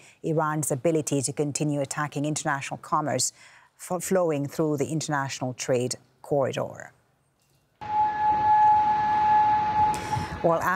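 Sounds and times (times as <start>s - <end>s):
speech: 0.2s - 7.0s, 10.4s - 10.7s
air raid sirens wailing: 7.8s - 10.7s.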